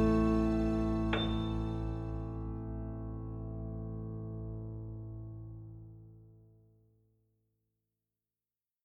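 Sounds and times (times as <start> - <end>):
sad and dark soft piano: 0.0 - 6.4.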